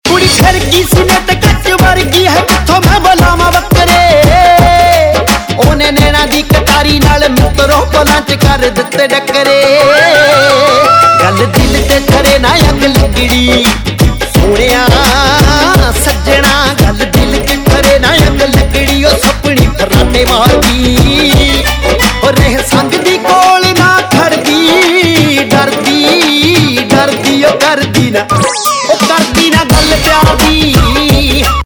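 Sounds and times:
dhol drum: 0.1s - 31.6s.

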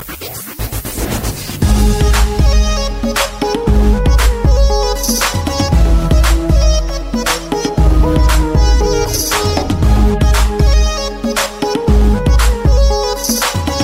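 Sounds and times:
music: 0.0s - 13.8s.

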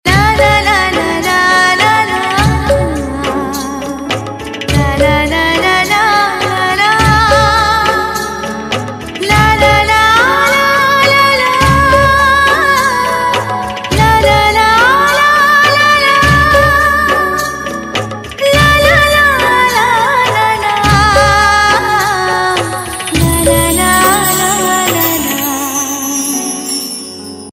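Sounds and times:
instrumental music: 0.0s - 27.5s.

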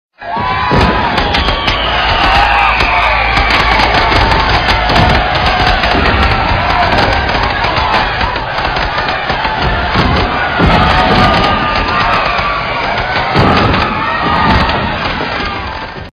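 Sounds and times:
Diwali fireworks: 0.3s - 16.1s.

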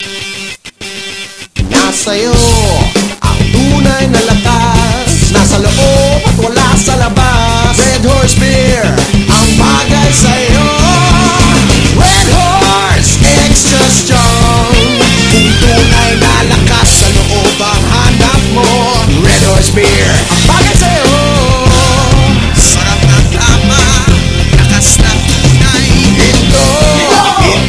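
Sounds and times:
beer theme music: 0.0s - 27.6s.

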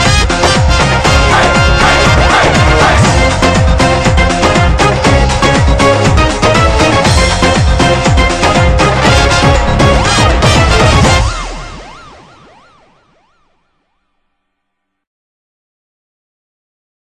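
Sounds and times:
instrumental title theme music: 0.0s - 13.0s.

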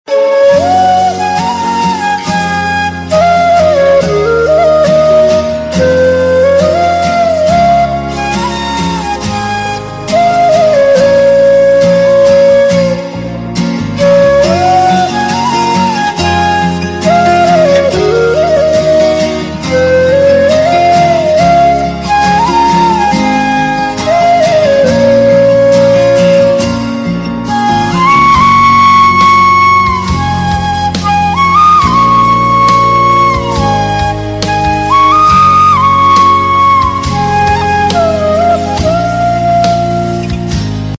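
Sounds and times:
flute: 0.0s - 40.9s.

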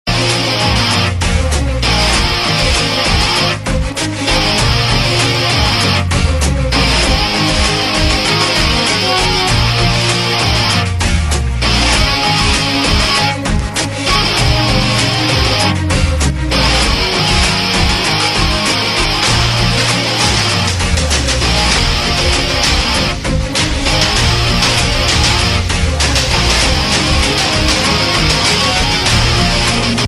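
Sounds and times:
theme music: 0.1s - 30.0s.

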